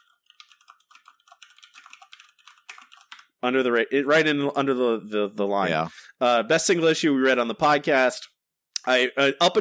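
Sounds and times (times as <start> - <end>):
typing on a computer keyboard: 0.0 - 3.4
speech: 3.4 - 9.5.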